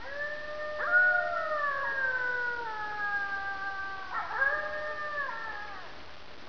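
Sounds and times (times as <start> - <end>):
wolf: 0.0 - 6.0.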